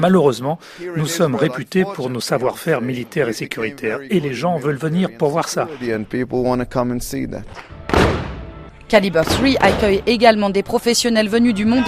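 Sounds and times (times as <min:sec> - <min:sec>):
speech: 0:00.0 - 0:08.2, 0:08.9 - 0:11.8
pump-action shotgun blast at a shooting range in Israel: 0:07.9 - 0:08.5.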